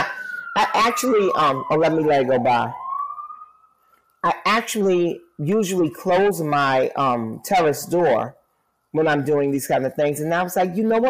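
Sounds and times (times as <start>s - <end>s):
sirens in city background: 0.0s - 8.5s
speech: 0.6s - 2.8s, 4.2s - 11.0s.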